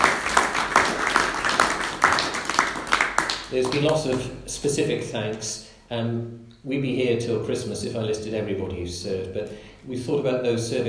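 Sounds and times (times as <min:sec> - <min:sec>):
audience applauding: 0:00.0 - 0:04.2
speech: 0:03.5 - 0:10.8.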